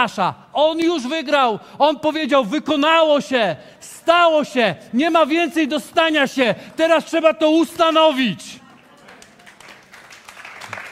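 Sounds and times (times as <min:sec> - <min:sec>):
speech: 0:00.0 - 0:08.6
brief scattered audience clapping: 0:08.6 - 0:10.8.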